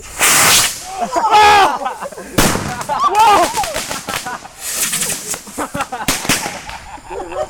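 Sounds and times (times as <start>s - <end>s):
fireworks toy car: 0.0s - 0.9s, 2.4s - 6.8s
laughter: 0.8s - 7.4s.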